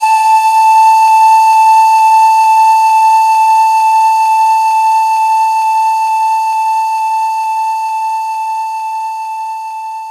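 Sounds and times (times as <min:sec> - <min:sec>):
pan flute: 0:00.0 - 0:10.0.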